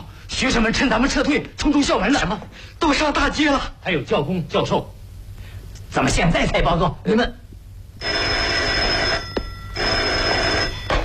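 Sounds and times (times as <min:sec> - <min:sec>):
speech: 0:00.4 - 0:05.0, 0:05.9 - 0:07.4, 0:08.0 - 0:08.3
electric telephone bell ringing: 0:08.0 - 0:11.0.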